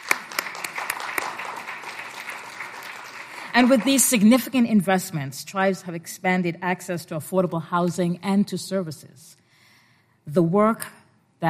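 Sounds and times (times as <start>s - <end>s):
audience applause: 0.0s - 4.1s
speech: 3.6s - 9.4s, 10.3s - 11.4s.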